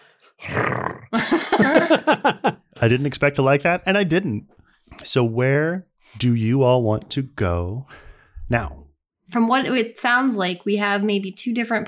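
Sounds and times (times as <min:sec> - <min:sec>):
person imitating a cat's purring growl: 0:00.4 - 0:01.2
laughter: 0:01.2 - 0:03.0
speech: 0:01.6 - 0:11.8.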